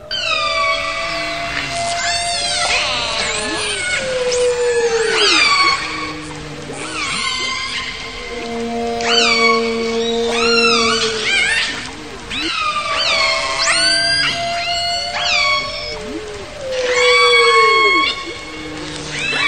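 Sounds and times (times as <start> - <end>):
dolphin or whale high whistles: 0.0 - 19.4
underwater hiss: 1.0 - 19.4.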